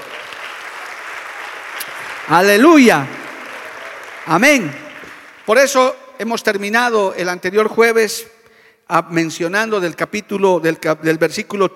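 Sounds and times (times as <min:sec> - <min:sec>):
audience applause: 0:00.0 - 0:05.8
speech: 0:02.3 - 0:03.2, 0:04.2 - 0:04.8, 0:05.5 - 0:11.7.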